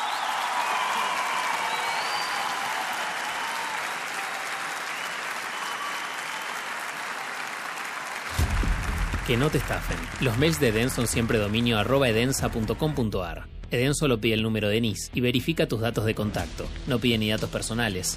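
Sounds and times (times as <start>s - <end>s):
applause from a large audience: 0.0s - 13.2s
speech: 9.3s - 18.1s.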